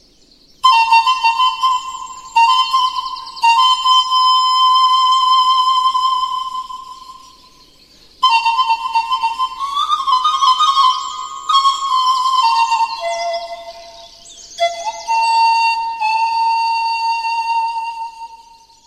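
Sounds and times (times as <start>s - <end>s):
Romanian doina folk music: 0.6s - 18.7s.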